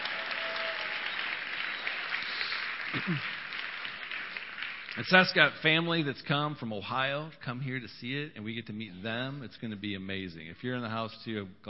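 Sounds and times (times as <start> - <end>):
brief cheer: 0.0 - 3.2
crowd applause: 0.0 - 5.7
speech: 2.9 - 3.4, 5.0 - 11.6.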